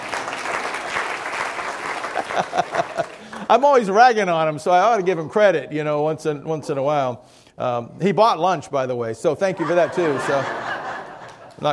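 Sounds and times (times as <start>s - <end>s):
audience applause: 0.0s - 3.5s
laughter: 2.0s - 3.6s, 9.5s - 11.7s
speech: 2.4s - 10.6s.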